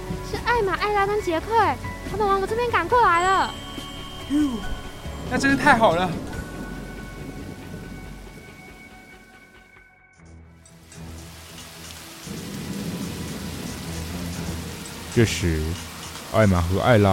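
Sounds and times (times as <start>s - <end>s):
steady hissing rainfall: 0.0s - 9.4s, 10.6s - 17.1s
speech: 0.6s - 3.6s, 4.3s - 6.3s, 15.2s - 17.1s
deep thunder rumble: 4.6s - 9.3s, 12.3s - 15.9s.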